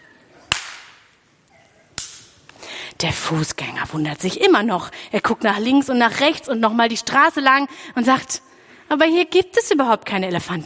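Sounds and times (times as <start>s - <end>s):
hands clapping: 0.5s - 1.1s, 2.0s - 2.6s
speech: 3.0s - 10.6s.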